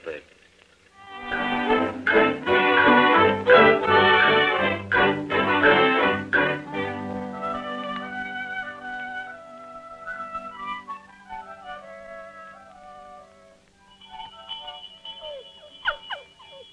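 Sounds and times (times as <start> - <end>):
farm dinner bell ringing: 1.1 - 7.0, 13.8 - 16.7.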